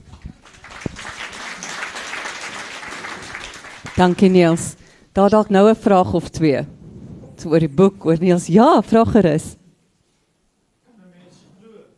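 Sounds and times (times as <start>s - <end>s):
audience applause: 0.0s - 4.4s
speech: 4.0s - 6.8s, 7.4s - 9.6s.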